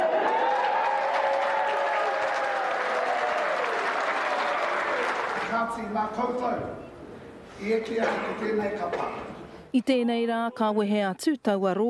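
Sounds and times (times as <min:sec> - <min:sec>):
crowd clapping and cheering at a kapa haka event for a school group: 0:00.0 - 0:05.9
speech: 0:05.7 - 0:06.9, 0:07.6 - 0:11.8.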